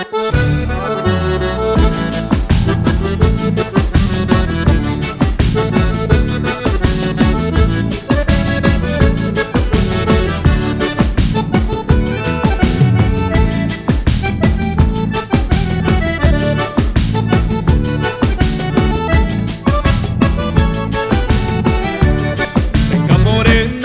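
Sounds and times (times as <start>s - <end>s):
batidão gaúcho music: 0.3s - 23.7s.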